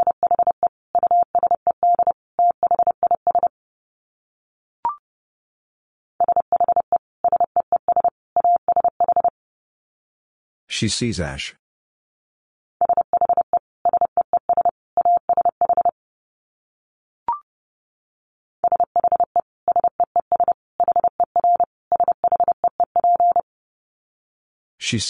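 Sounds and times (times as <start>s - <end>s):
Morse code tones at 30 words per minute: 0.0s - 3.5s, 6.2s - 9.3s, 12.8s - 16.0s, 18.6s - 23.4s
speech: 10.8s - 11.6s, 24.9s - 25.0s.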